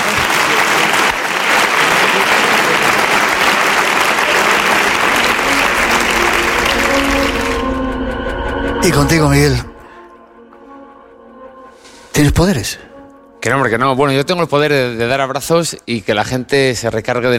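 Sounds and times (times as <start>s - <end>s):
audience applause: 0.0s - 7.8s
speech: 8.8s - 9.7s, 12.2s - 17.3s.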